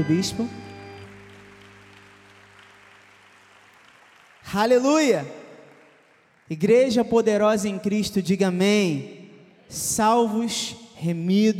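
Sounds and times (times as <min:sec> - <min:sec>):
speech: 0:00.0 - 0:00.7, 0:04.5 - 0:05.4, 0:06.5 - 0:11.5
applause: 0:00.0 - 0:07.8.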